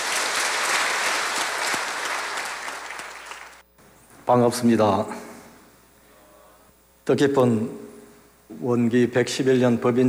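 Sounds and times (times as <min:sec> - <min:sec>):
audience applause: 0:00.0 - 0:03.6
speech: 0:04.3 - 0:05.3, 0:07.1 - 0:07.9, 0:08.5 - 0:10.0.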